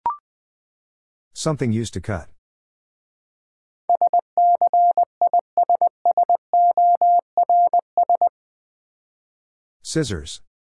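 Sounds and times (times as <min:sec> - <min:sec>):
speech: 0:01.4 - 0:02.3, 0:09.9 - 0:10.5
Morse code word sent at 20 wpm: 0:03.9 - 0:08.3.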